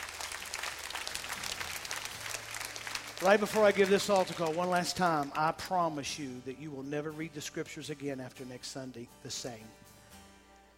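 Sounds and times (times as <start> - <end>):
audience hand clap of praise: 0.0 - 5.4
speech: 3.2 - 9.8.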